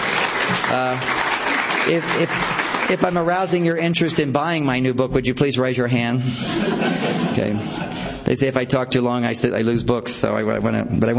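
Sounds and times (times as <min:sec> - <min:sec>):
audience clapping for a speaker's talk: 0:00.0 - 0:04.3
speech: 0:00.6 - 0:01.2, 0:01.8 - 0:11.1
laughter: 0:06.2 - 0:08.4.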